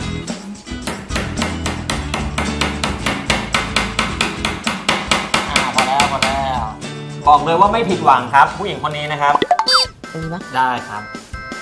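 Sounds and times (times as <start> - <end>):
hammer blows driving a nail in to make a pilot hole for mounting hooks: 0.8 - 6.4
speech: 7.3 - 9.6, 10.2 - 11.2.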